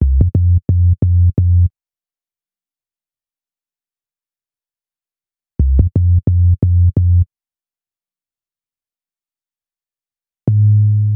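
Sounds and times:
hip-hop bass: 0.0 - 1.7, 5.6 - 7.2, 10.5 - 11.1.

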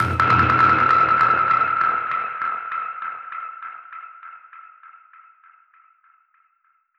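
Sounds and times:
dub percussion hit: 0.0 - 2.2.

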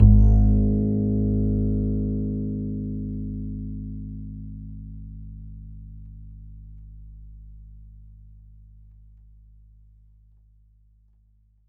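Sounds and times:
E note on the E string of an upright bass: 0.0 - 8.9.

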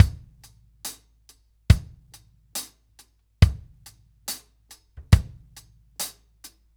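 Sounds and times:
70s ballad drum loop: 0.0 - 1.1, 1.7 - 2.7, 3.4 - 6.2.

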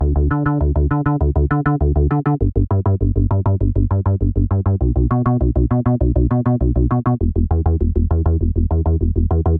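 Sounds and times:
simple slapback bass in D: 0.0 - 9.5.

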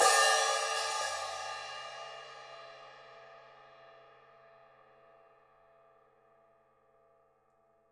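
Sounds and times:
open hi-hat: 0.0 - 2.2.

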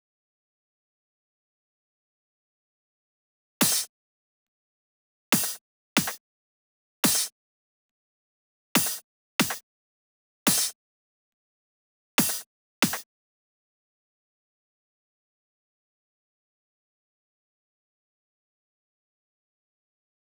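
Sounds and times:
breakbeat bass drum attack: 3.6 - 3.9, 5.4 - 6.2, 7.1 - 7.3, 8.8 - 9.6, 10.5 - 10.7, 12.2 - 13.0.

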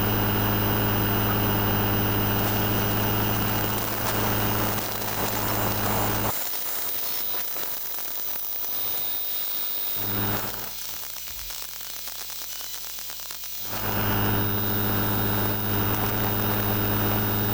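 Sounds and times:
electromagnetic field buzzing: 0.0 - 6.3, 9.8 - 11.2, 13.5 - 17.5.

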